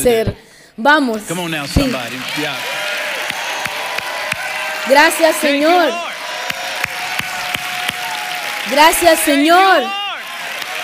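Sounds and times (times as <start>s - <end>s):
speech: 0.0s - 2.8s, 4.8s - 6.1s, 8.7s - 10.0s
audience shouting and cheering in joy: 1.1s - 10.8s.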